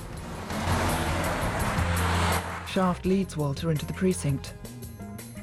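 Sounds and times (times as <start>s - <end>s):
limousine road rush and wind noise on a highway: 0.0s - 2.8s
speech: 2.8s - 4.7s.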